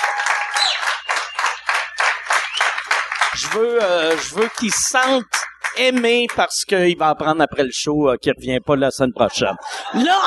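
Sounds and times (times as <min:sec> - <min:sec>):
audience applause: 0:00.0 - 0:06.4
speech: 0:03.4 - 0:10.2
laughter: 0:09.2 - 0:10.2.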